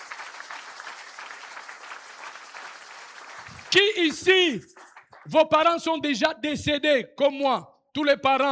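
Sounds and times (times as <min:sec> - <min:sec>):
audience applause at a gathering: 0:00.0 - 0:05.3
speech: 0:03.7 - 0:04.7, 0:05.3 - 0:08.5.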